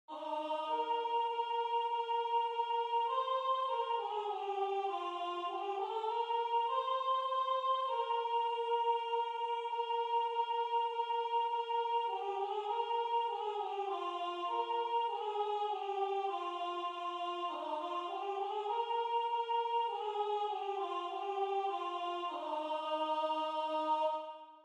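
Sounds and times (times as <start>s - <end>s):
soprano singing: 0.1s - 24.4s.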